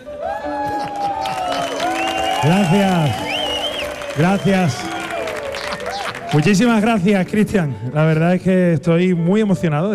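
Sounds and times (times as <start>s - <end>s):
voices cheering: 0.2s - 7.0s
audience applause: 0.6s - 7.2s
sustained whistle-like tone: 1.5s - 4.9s
speech: 2.4s - 3.3s, 4.2s - 4.9s, 6.3s - 9.9s.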